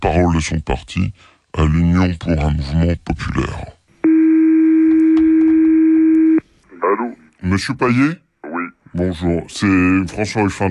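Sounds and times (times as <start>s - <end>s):
speech: 0.0s - 3.8s, 7.4s - 8.2s, 9.0s - 10.6s
telephone call ringing tone: 4.0s - 6.4s.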